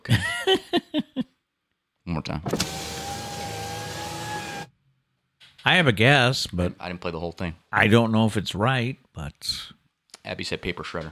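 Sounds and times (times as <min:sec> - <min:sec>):
speech: 0:02.3 - 0:02.8, 0:05.7 - 0:11.1
car power window motor whirring: 0:02.5 - 0:04.7.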